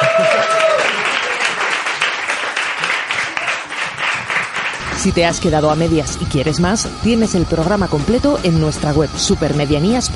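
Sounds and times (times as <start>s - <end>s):
crowd applause for the winner: 0.0s - 5.8s
speech: 5.0s - 10.1s.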